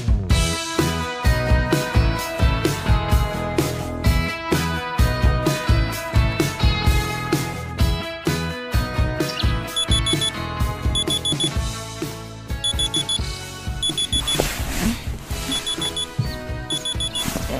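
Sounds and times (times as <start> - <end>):
dense musical backing: 0.0 - 17.5
phone alarm ringing: 9.7 - 10.4, 11.0 - 11.6, 12.6 - 14.4, 15.4 - 17.3.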